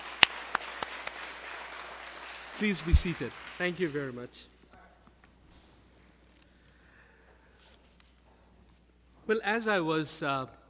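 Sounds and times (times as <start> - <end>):
audience applause: 0.0 - 4.3
speech: 2.6 - 4.6, 9.3 - 10.6.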